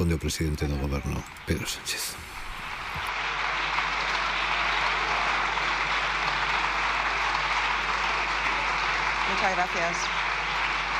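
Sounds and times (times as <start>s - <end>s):
speech: 0.0s - 2.3s, 9.4s - 10.3s
deputies applauding in parliament: 0.0s - 10.9s.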